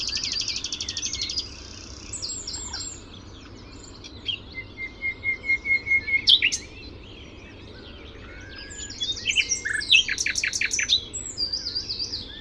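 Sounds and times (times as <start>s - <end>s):
Common nightingale singing: 0.0s - 12.3s.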